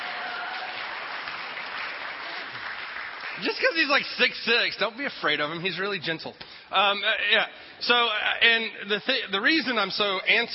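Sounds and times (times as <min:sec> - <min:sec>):
audience applause: 0:00.0 - 0:04.4
speech: 0:03.4 - 0:10.5.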